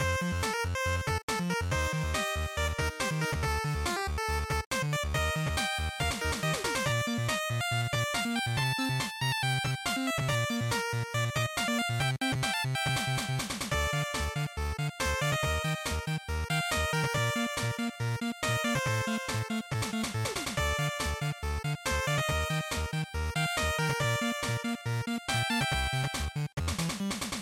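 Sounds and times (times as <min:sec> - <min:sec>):
action title music loop at 140 bpm: 0:00.0 - 0:27.4.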